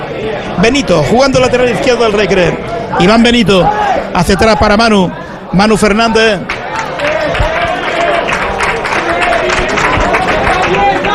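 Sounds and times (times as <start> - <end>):
speech: 0.1 - 6.6
applause from the Bollullo team bench: 6.4 - 11.1.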